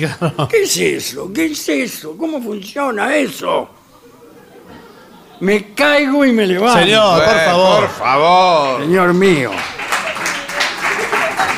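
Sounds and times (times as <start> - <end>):
laughter: 0.0 - 1.0, 3.8 - 5.7, 6.6 - 11.5
speech: 0.0 - 3.8, 5.4 - 9.7
audience applause: 7.0 - 11.5.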